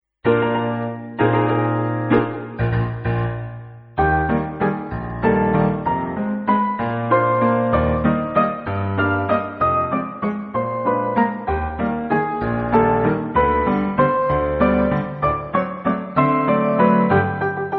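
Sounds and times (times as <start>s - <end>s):
waltz: 0.3s - 17.7s.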